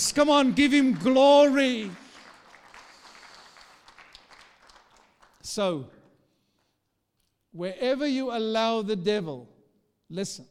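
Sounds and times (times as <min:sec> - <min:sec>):
audience clapping: 0:00.0 - 0:05.6
speech: 0:00.1 - 0:02.0, 0:05.5 - 0:06.0, 0:07.6 - 0:09.5, 0:10.1 - 0:10.5.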